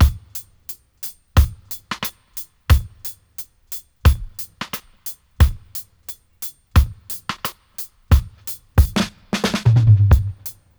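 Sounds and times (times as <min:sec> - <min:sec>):
dry dub drum loop: 0:00.0 - 0:00.7, 0:01.4 - 0:10.7.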